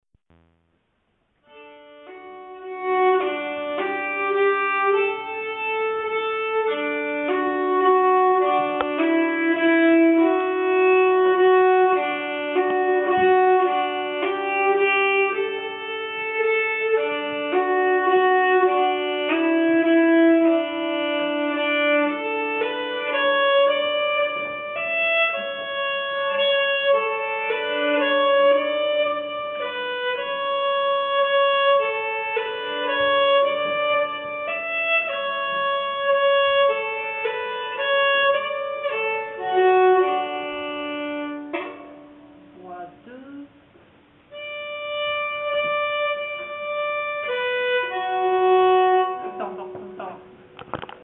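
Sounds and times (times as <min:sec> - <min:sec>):
waltz on nyckelharpa: 0:01.5 - 0:51.0.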